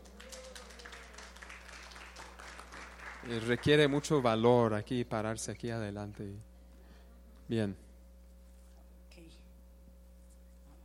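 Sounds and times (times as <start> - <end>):
audience applause: 0.0 - 4.6
faint low hum: 0.0 - 10.8
speech: 3.2 - 6.5, 7.5 - 7.8.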